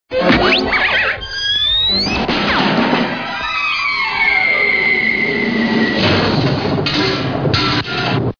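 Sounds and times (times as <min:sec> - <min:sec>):
all kinds of cartoon crashes and rumbles: 0:00.1 - 0:04.4, 0:05.0 - 0:08.3.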